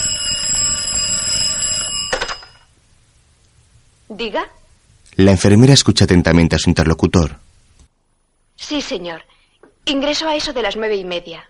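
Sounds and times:
telephone ringing: 0.0s - 2.7s
speech: 4.1s - 7.4s, 8.6s - 11.4s.

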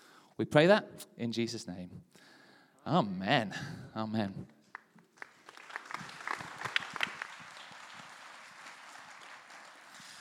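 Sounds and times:
speech: 0.4s - 4.6s
audience applause: 5.1s - 10.2s.

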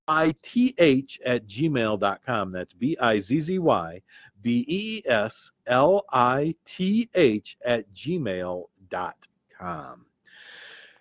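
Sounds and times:
speech: 0.1s - 10.6s
deep breath: 4.0s - 4.4s, 10.2s - 11.0s.

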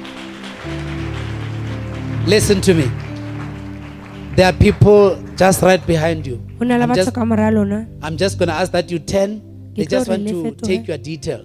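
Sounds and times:
audience applause: 0.0s - 6.6s
sustained low keyboard-like chords: 0.0s - 11.4s
speech: 2.3s - 3.0s, 4.4s - 11.4s.

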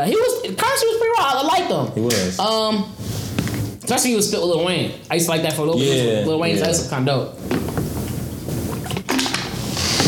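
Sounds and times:
speech: 0.0s - 3.2s, 3.8s - 7.8s
person drinking water: 7.4s - 10.0s.

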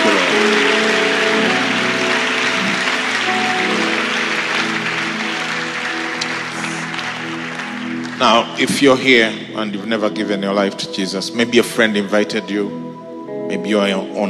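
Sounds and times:
audience applauding: 0.0s - 9.5s
sustained musical chord humming: 0.0s - 14.2s
speech: 8.2s - 12.9s, 13.5s - 14.2s.

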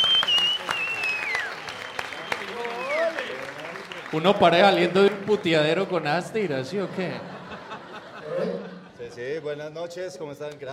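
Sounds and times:
audience applauding: 0.0s - 7.2s
speech: 4.1s - 7.3s, 9.1s - 10.7s
laughter: 6.3s - 9.7s.

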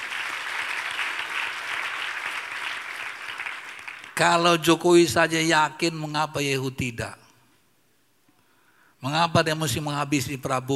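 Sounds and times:
audience applause: 0.0s - 4.2s
speech: 4.2s - 7.2s, 9.0s - 10.7s.

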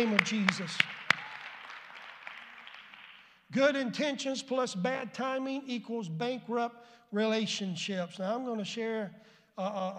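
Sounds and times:
speech: 0.0s - 1.0s, 3.5s - 9.9s
audience clapping hands in praise: 0.0s - 3.5s.

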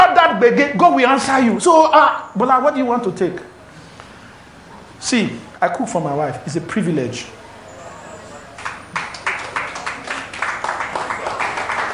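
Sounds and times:
murmur of voices: 0.0s - 11.9s
speech: 0.4s - 3.5s, 5.0s - 7.4s
audience clapping: 8.5s - 11.9s.

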